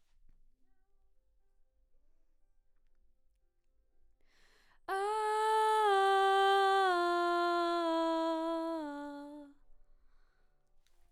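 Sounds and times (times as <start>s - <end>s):
background vocals: 4.9s - 9.5s.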